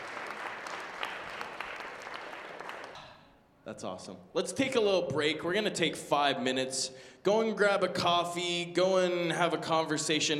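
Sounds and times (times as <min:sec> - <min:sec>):
audience applause: 0:00.0 - 0:03.0
speech: 0:03.7 - 0:10.3.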